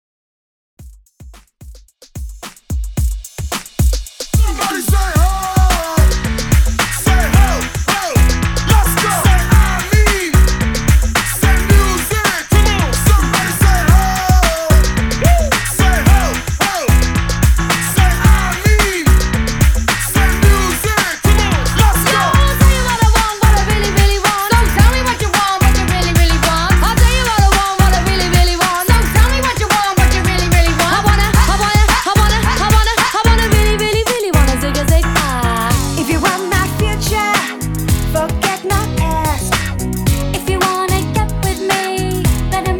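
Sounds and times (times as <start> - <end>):
90s hype hip hop beat: 0.8 - 42.7.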